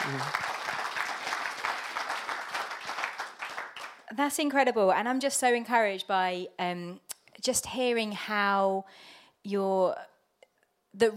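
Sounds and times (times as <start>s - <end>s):
audience clapping: 0.0s - 4.1s
speech: 0.1s - 0.4s, 4.1s - 10.1s, 10.9s - 11.1s.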